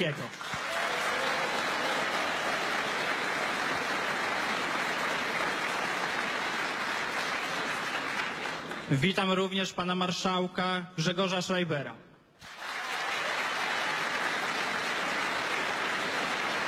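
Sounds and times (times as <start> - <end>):
speech: 0.0 - 0.6, 8.9 - 12.5
large crowd applauding Polish Prime Minister Mateusz Morawiecki at an official event: 0.0 - 9.0, 12.4 - 16.6.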